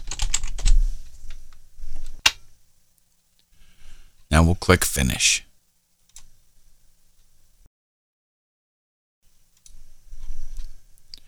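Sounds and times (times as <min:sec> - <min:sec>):
typing an email address and password on a computer keyboard: 0:00.0 - 0:00.7
speech: 0:04.4 - 0:05.5.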